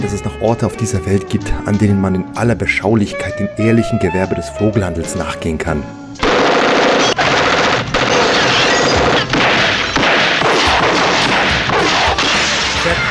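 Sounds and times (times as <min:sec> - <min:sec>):
speech: 0:00.1 - 0:06.0
gunfire shootout: 0:06.2 - 0:13.0.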